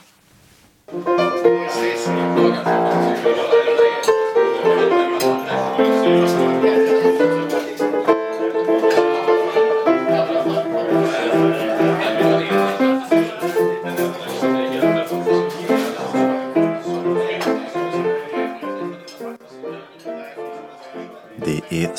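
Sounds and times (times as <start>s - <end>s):
piano playing: 0.9s - 21.9s.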